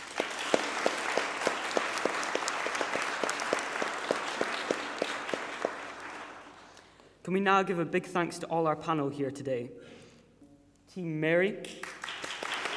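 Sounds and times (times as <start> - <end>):
audience applause: 0.0 - 6.8, 11.8 - 12.7
speech: 7.3 - 10.0, 11.0 - 11.9.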